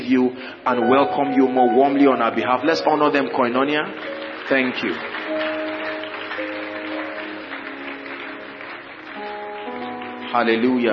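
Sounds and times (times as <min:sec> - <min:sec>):
speech: 0:00.1 - 0:05.5, 0:10.3 - 0:10.9
audience applause: 0:03.1 - 0:10.9.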